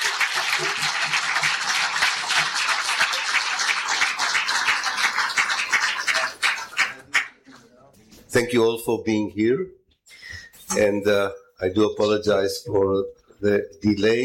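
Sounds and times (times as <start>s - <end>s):
crowd applauding: 0.0s - 7.6s
speech: 8.4s - 9.8s, 10.7s - 14.2s.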